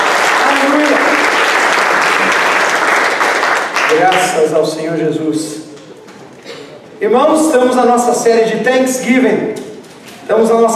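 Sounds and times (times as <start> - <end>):
loud audience applause: 0.0 - 4.5
speech: 3.9 - 5.6, 7.0 - 9.6, 10.3 - 10.7.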